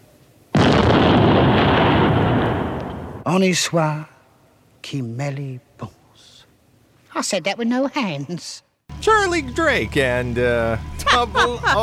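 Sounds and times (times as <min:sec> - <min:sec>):
hand grenade explosion: 0:00.6 - 0:03.3
speech: 0:03.3 - 0:04.1, 0:04.8 - 0:06.3, 0:07.2 - 0:11.8
laughter: 0:10.6 - 0:11.8.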